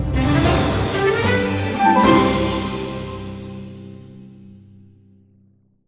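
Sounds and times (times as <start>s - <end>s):
boss defeat music: 0.2s - 4.2s.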